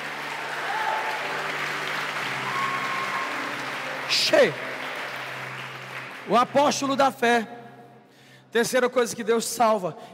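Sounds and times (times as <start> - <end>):
audience applauding: 0.0 - 7.1
speech: 4.2 - 4.7, 6.3 - 7.6, 8.5 - 10.1.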